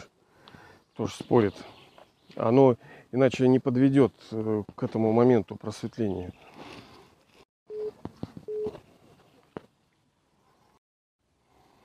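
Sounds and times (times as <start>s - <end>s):
speech: 1.0s - 1.8s, 2.4s - 6.6s
telephone call signal beeps: 7.7s - 8.8s.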